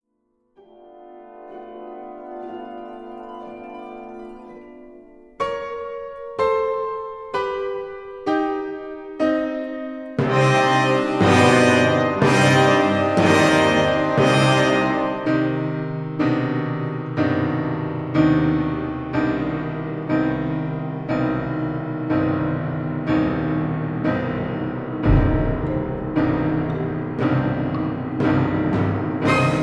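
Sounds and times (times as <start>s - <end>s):
piano concerto moderato sostenuto: 0.6s - 29.6s.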